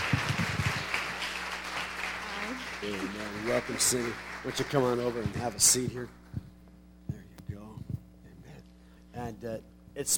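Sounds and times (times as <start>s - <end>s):
church audience applause welcoming a speaker to the City Church stage: 0.0s - 6.3s
speech: 2.8s - 6.2s, 9.4s - 10.1s.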